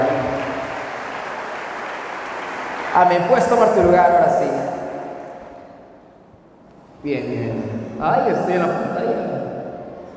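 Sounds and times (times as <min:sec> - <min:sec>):
church audience clapping: 0:00.0 - 0:04.2
speech: 0:03.0 - 0:04.8, 0:07.0 - 0:09.4.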